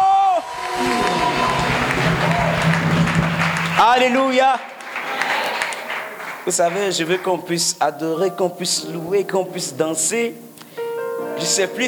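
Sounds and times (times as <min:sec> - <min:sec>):
congregation applause at a worship service: 0:00.4 - 0:07.7
speech: 0:03.8 - 0:04.8, 0:06.4 - 0:10.6, 0:11.4 - 0:11.8.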